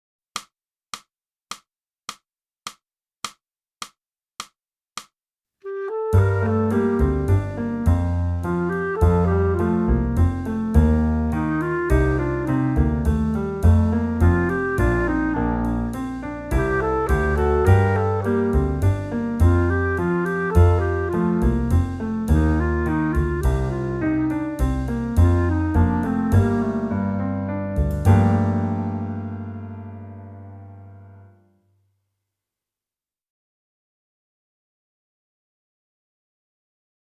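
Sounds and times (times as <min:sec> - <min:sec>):
clarinet: 0:05.6 - 0:30.8.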